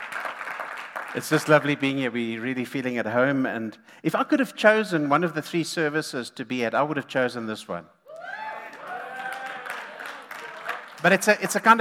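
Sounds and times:
audience clapping: 0.0 - 2.0, 8.1 - 11.7
speech: 1.2 - 8.0, 11.0 - 11.7.

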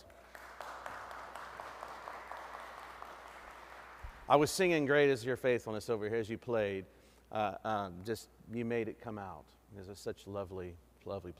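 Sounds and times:
round of applause from a crowd: 0.0 - 4.5
speech: 4.3 - 11.3.

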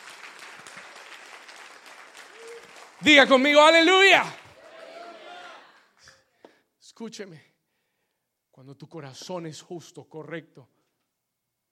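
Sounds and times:
audience applause: 0.0 - 5.8
speech: 3.0 - 4.4, 7.0 - 7.5, 8.6 - 10.8.

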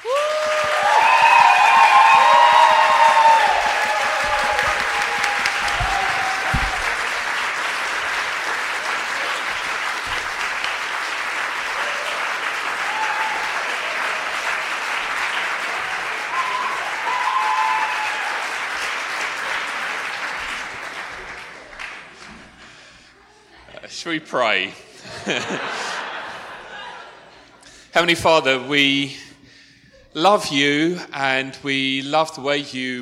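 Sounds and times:
crowd cheers and whoops: 0.0 - 7.5, 11.7 - 18.6
crowd applause: 0.0 - 22.8
speech: 24.2 - 25.8, 28.0 - 29.3, 30.1 - 33.0
laughter: 24.9 - 27.6.

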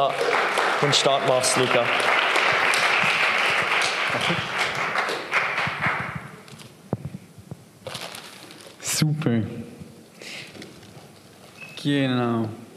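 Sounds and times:
speech: 0.0 - 2.2, 4.1 - 4.5, 9.0 - 9.8, 11.8 - 12.6
audience applause: 0.0 - 6.4.

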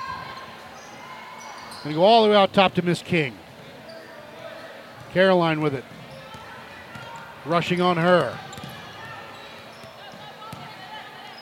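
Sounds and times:
constant low murmur: 0.0 - 11.4
speech: 1.8 - 3.4, 5.2 - 6.0, 7.4 - 8.5
basketball dribbled on court during a women's game: 5.8 - 11.4.

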